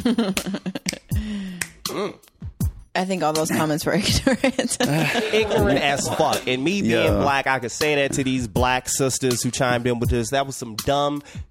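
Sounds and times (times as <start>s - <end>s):
speech: 0.0s - 2.2s, 3.0s - 11.4s
finger snapping in a Z shape: 0.4s - 1.9s
expressive pitched vocal sounds and sliding tones: 1.2s - 2.2s, 4.8s - 8.6s
laughter: 4.1s - 7.4s.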